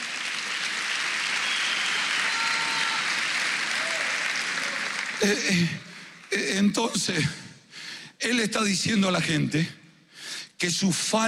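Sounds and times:
audience applause: 0:00.0 - 0:06.6
speech: 0:05.2 - 0:07.4, 0:08.2 - 0:09.8, 0:10.6 - 0:11.2.

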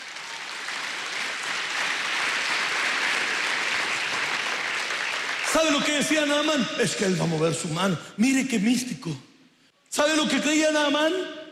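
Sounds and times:
audience applause: 0:00.0 - 0:06.3
speech: 0:05.6 - 0:09.3, 0:09.9 - 0:11.4.

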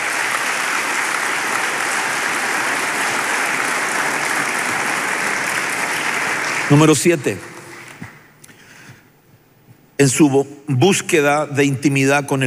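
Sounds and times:
audience clapping: 0:00.0 - 0:08.3
speech: 0:06.7 - 0:07.5, 0:10.0 - 0:12.4.

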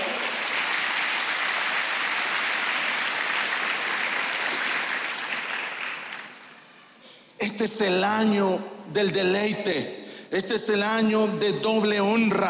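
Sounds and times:
audience applause: 0:00.0 - 0:06.7
speech: 0:07.4 - 0:12.4.

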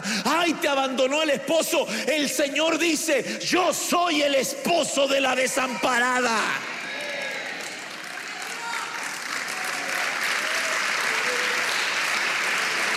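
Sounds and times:
speech: 0:00.5 - 0:06.8
crowd clapping: 0:06.6 - 0:12.9.

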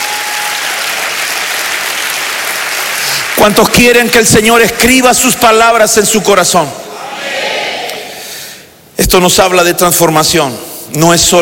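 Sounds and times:
audience clapping: 0:00.0 - 0:04.0
speech: 0:03.4 - 0:06.8, 0:09.1 - 0:11.4.

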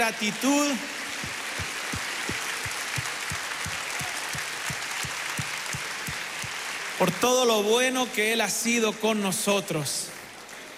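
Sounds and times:
speech: 0:00.0 - 0:01.7, 0:07.0 - 0:10.2
audience applauding: 0:00.0 - 0:07.4.

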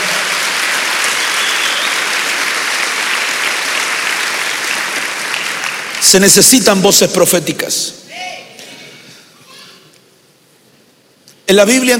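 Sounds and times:
audience clapping: 0:00.0 - 0:06.8
speech: 0:06.1 - 0:08.0, 0:11.5 - 0:11.9.

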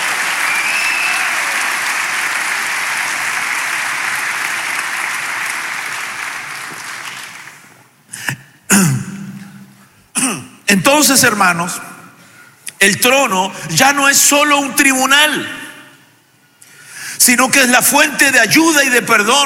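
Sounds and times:
audience clapping hands: 0:00.0 - 0:07.9
speech: 0:08.7 - 0:09.0, 0:10.7 - 0:11.9, 0:12.8 - 0:15.6, 0:17.3 - 0:19.4.

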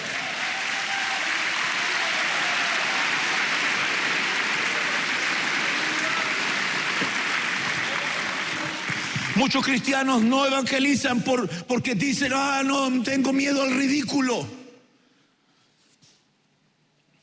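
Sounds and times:
audience clapping: 0:00.0 - 0:10.9
speech: 0:09.4 - 0:14.6.

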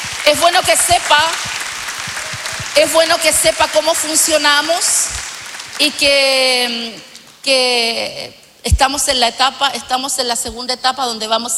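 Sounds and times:
church congregation clapping at a Spanish-language service: 0:00.0 - 0:07.4
speech: 0:00.3 - 0:01.6, 0:02.8 - 0:11.5.

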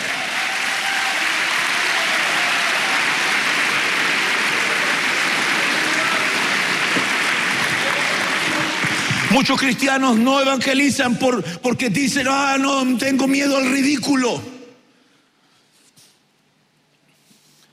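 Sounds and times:
audience clapping hands: 0:00.0 - 0:10.6
speech: 0:09.4 - 0:14.5.

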